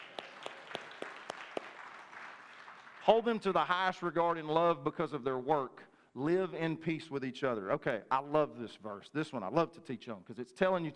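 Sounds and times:
audience applause: 0.0 - 3.1
speech: 3.1 - 10.9.

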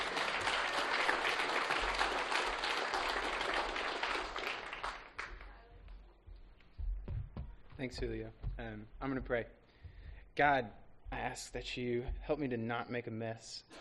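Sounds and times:
audience applause welcoming a comedian: 0.0 - 5.6
speech: 7.8 - 9.6, 10.4 - 13.8.

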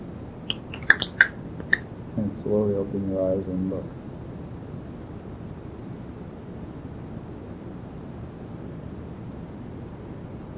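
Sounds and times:
finger snaps: 0.5 - 1.8
speech: 2.2 - 4.0.

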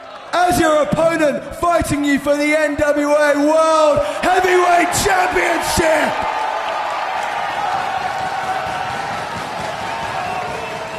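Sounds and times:
wrestling fans cheering and applauding at the Crockett Cup: 0.0 - 0.6, 4.0 - 10.9
speech: 0.5 - 6.4.

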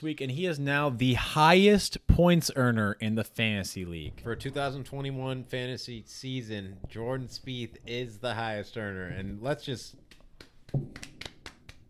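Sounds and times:
speech: 0.0 - 10.1, 10.7 - 11.2
two people golf clapping: 10.1 - 11.8.

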